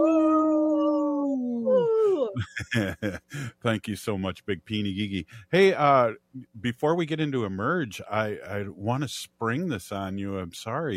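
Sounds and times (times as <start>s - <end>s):
people imitating wolf howls: 0.0s - 2.4s
laughter: 2.4s - 3.6s
speech: 2.4s - 10.9s.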